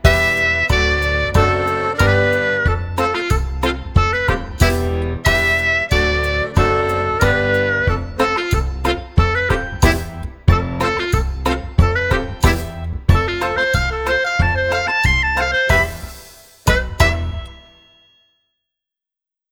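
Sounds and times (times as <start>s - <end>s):
quirky klezmer clarinet: 0.0s - 17.7s.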